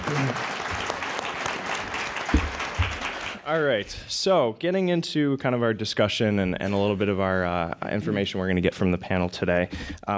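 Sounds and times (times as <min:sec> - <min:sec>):
audience applause: 0:00.0 - 0:03.5
speech: 0:03.5 - 0:10.1.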